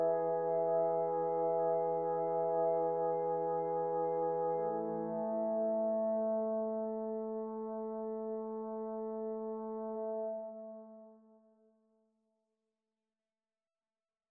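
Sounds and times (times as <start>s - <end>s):
solo flute: 0.0s - 11.1s.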